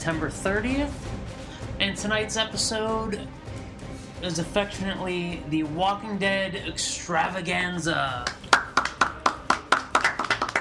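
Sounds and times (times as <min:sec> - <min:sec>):
speech: 0:00.0 - 0:03.4, 0:04.2 - 0:08.4
small group clapping: 0:08.2 - 0:10.5.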